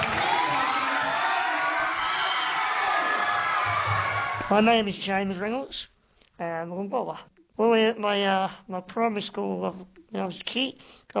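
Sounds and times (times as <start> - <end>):
schoolchildren applauding and cheering: 0.0 - 4.6
speech: 4.5 - 11.1.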